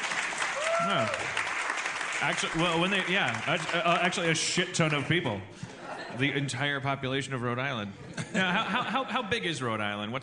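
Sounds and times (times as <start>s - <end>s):
audience clapping: 0.0s - 5.4s
speech: 0.8s - 1.4s, 2.2s - 10.2s
laughter: 5.6s - 6.5s, 8.0s - 9.3s.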